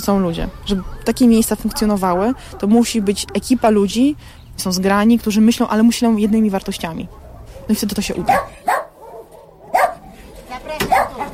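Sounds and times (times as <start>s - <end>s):
speech: 0.0s - 8.6s
dog barking: 1.5s - 3.7s, 7.0s - 11.3s.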